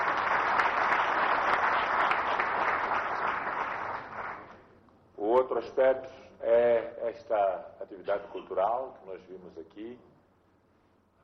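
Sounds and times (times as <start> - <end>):
applause: 0.0 - 4.7
speech: 5.5 - 10.1.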